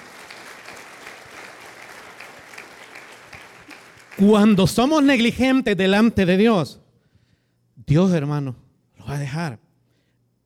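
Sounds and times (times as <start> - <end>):
audience applause: 0.0 - 4.6
speech: 4.2 - 6.8, 7.9 - 9.6.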